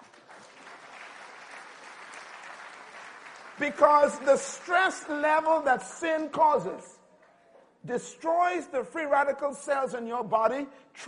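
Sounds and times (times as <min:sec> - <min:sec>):
audience applause: 0:00.0 - 0:05.5
speech: 0:03.6 - 0:07.0, 0:07.8 - 0:11.0.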